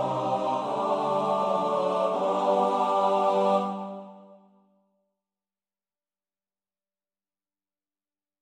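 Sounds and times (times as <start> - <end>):
SATB four-part choir singing: 0.0 - 4.6.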